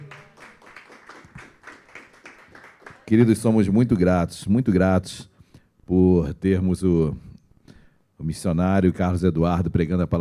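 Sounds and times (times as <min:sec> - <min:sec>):
crowd clapping: 0:00.0 - 0:03.6
speech: 0:03.1 - 0:05.3, 0:05.9 - 0:07.3, 0:08.2 - 0:10.2.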